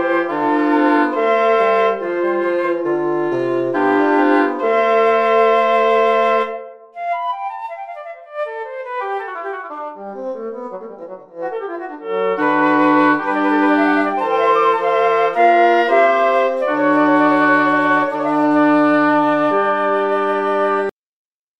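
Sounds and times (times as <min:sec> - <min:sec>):
synth scales: 0:00.0 - 0:06.7, 0:11.6 - 0:20.8.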